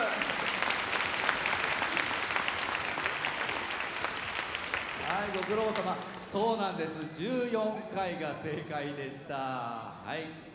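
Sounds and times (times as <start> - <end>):
audience applause: 0.0 - 6.3
speech: 5.4 - 10.5.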